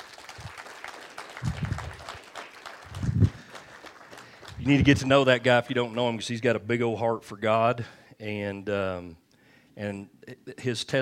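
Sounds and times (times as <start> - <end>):
audience hand clapping: 0.0 - 5.6
speech: 4.7 - 9.2, 9.8 - 10.9.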